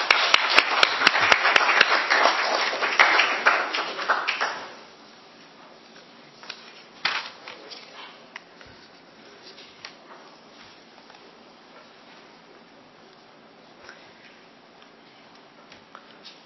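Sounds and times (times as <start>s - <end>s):
applause for new councillor: 0.0s - 4.8s.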